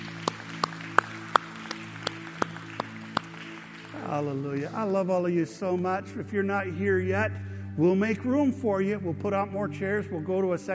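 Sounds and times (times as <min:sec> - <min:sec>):
audience clapping: 0:00.0 - 0:05.4
speech: 0:04.1 - 0:10.7.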